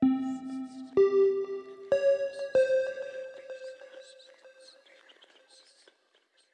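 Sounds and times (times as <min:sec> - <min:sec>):
small arpeggio: 0:00.0 - 0:04.1.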